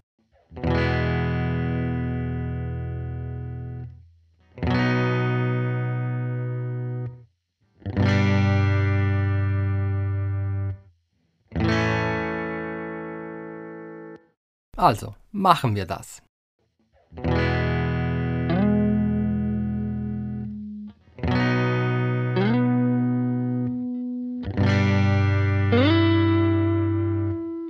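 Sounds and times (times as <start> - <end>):
guitar playing over E-B-G-A chord progression: 0.6 - 3.9, 4.6 - 7.2, 7.9 - 10.8, 11.5 - 14.3, 17.2 - 27.6
speech: 14.8 - 16.3.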